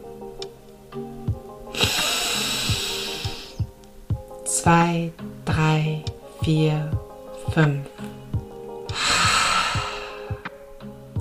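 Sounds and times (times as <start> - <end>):
soft low music: 0.0 - 11.2
deep breath during a guided breathing exercise: 1.8 - 3.6, 8.9 - 10.6
speech: 4.6 - 7.9.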